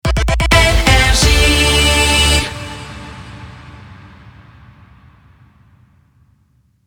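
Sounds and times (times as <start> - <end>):
jingle: 0.5 - 4.1.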